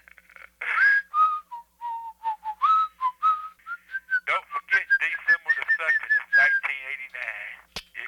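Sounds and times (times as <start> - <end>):
person whistling a song: 0.7 - 6.7.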